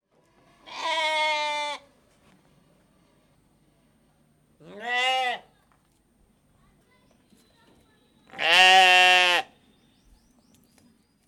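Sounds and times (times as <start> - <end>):
Hungarian sheep bleating: 0.6 - 1.8, 4.6 - 5.5, 8.4 - 9.5.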